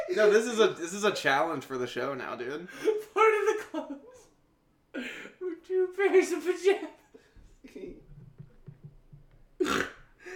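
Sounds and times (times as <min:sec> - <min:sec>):
speech: 0:00.1 - 0:04.3, 0:04.9 - 0:07.0, 0:07.6 - 0:08.0
person snorting loudly: 0:09.6 - 0:10.3.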